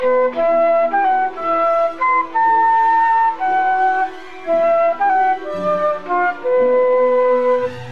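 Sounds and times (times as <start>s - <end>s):
flute: 0.0s - 7.8s.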